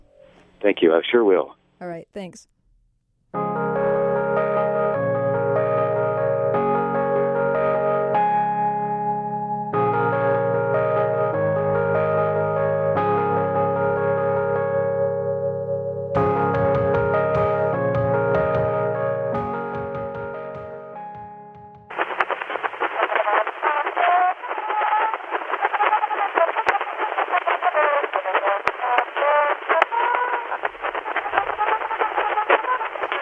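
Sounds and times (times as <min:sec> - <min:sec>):
1878 Edison phonograph music recording: 0:00.0 - 0:01.4, 0:03.6 - 0:33.2
speech: 0:00.6 - 0:02.5, 0:03.3 - 0:03.6
organ-like notes: 0:03.4 - 0:21.9.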